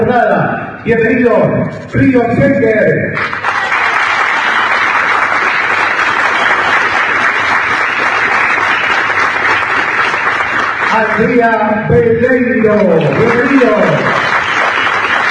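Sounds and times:
speech: 0.1s - 3.5s, 11.0s - 14.3s
audience applause welcoming delegation: 3.2s - 11.4s, 12.7s - 15.3s.

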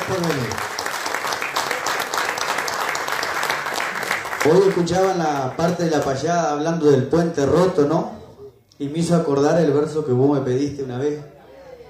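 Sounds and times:
audience applause: 0.0s - 5.8s
speech: 4.4s - 8.2s, 8.8s - 11.3s.

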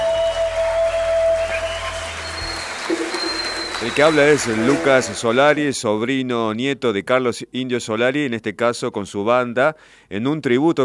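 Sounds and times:
audience applause: 0.0s - 5.6s
speech: 3.8s - 10.8s.

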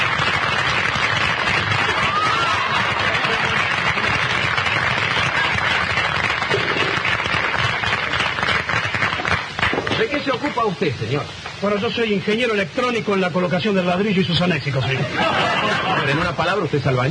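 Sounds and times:
crowd applauding: 0.0s - 10.4s
laughter: 1.8s - 4.4s, 14.6s - 16.6s
speech: 10.6s - 17.0s.

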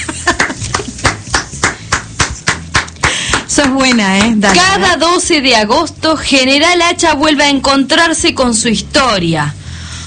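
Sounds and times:
applause: 0.3s - 4.8s
speech: 3.6s - 9.6s.

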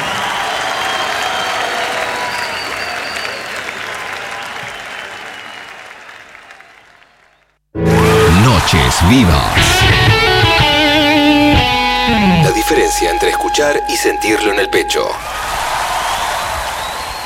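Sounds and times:
audience applause: 0.0s - 11.0s, 15.2s - 17.2s
speech: 8.7s - 10.1s, 12.2s - 15.6s.

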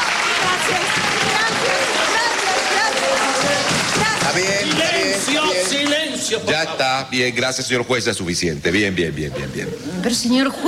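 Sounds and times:
audience applause: 0.0s - 6.4s
speech: 0.4s - 1.8s, 5.5s - 10.6s.

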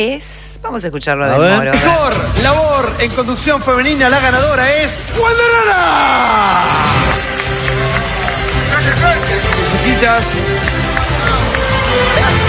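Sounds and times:
speech: 0.0s - 7.3s, 9.0s - 10.7s
applause: 6.5s - 12.4s.

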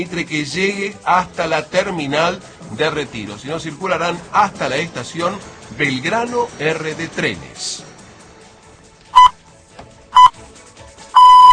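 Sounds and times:
speech: 0.0s - 7.9s
radio time signal electronic pips: 9.1s - 9.4s, 10.2s - 10.4s, 11.2s - 11.5s.

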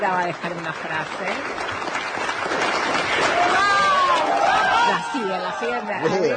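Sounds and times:
crowd applauding loudly: 0.0s - 6.3s
speech: 0.0s - 6.3s
people shouting: 3.3s - 5.9s.

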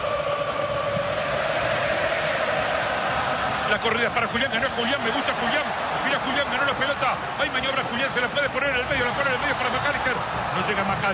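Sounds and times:
Argentine football crowd roaring in a stadium: 0.0s - 11.1s
speech: 3.7s - 11.1s.

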